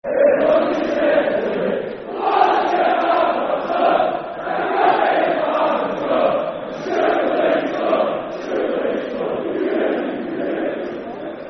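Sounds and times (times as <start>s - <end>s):
football crowd chanting: 0.0s - 11.4s.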